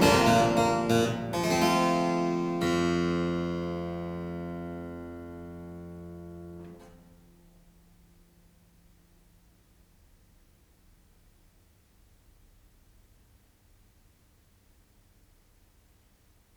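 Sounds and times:
harpsichord allemande: 0:00.0 - 0:06.8.

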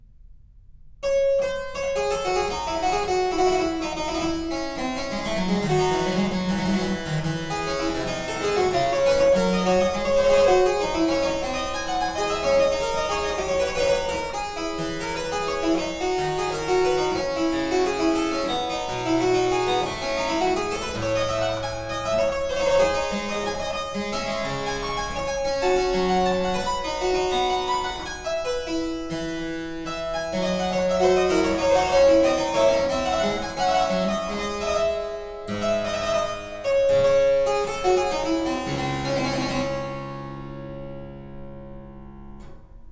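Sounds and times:
harpsichord prelude in D minor: 0:01.0 - 0:42.9.

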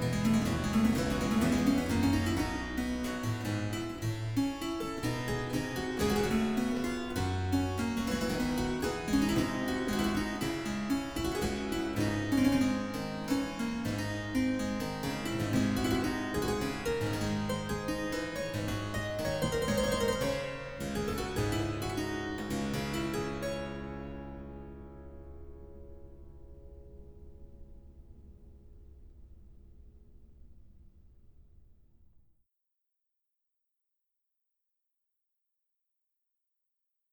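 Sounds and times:
courante in D on harpsichord: 0:00.0 - 0:28.4.

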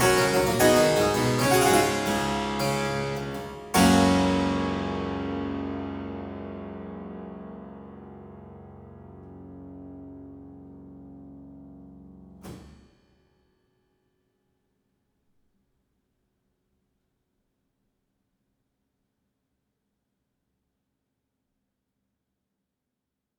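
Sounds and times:
harpsichord aria in G major: 0:00.0 - 0:07.6.

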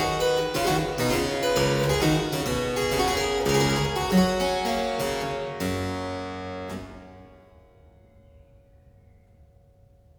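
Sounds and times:
harpsichord playing a courante: 0:00.0 - 0:07.5.

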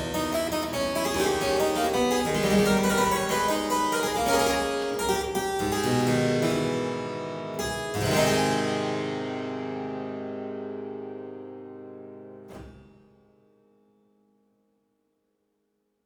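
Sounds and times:
harpsichord courante in A minor: 0:00.0 - 0:12.8.

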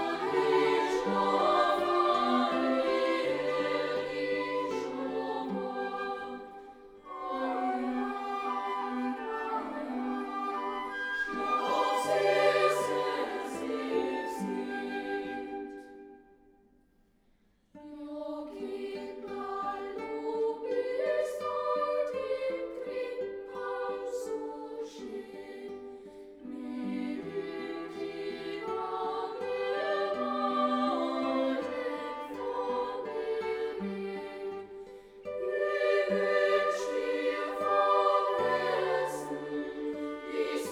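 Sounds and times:
chamber ensemble playing: 0:00.0 - 0:06.4, 0:07.1 - 0:15.4, 0:35.4 - 0:40.7
choir singing: 0:00.0 - 0:16.3, 0:17.8 - 0:40.7.

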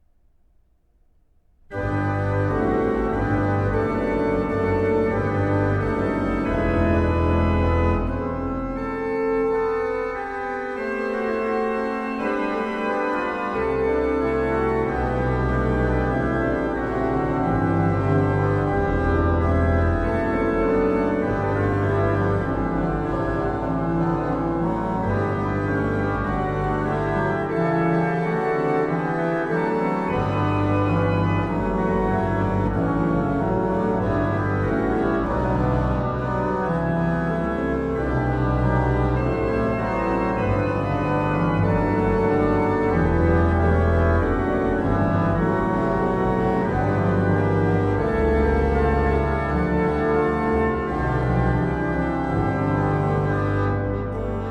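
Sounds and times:
organ piece: 0:01.7 - 0:54.4.

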